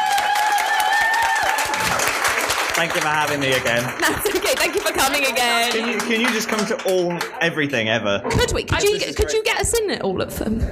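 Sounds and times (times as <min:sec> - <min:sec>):
audience applause: 0:00.0 - 0:07.8
speech: 0:02.8 - 0:10.6.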